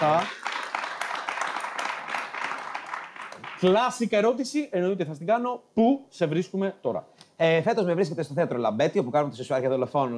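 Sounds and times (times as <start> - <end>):
applause: 0.0 - 4.0
speech: 3.6 - 10.1.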